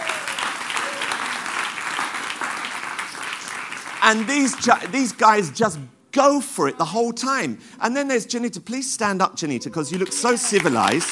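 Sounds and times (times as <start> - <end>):
crowd applauding: 0.0 - 5.2, 9.8 - 11.1
speech: 4.0 - 11.1.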